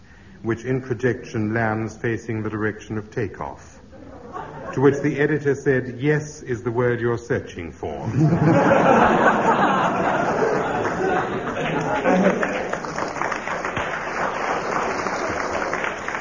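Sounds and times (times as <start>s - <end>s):
speech: 0.4s - 3.8s, 4.8s - 9.7s
audience chuckling: 3.9s - 5.2s, 8.0s - 16.1s
audience applause: 9.1s - 16.1s.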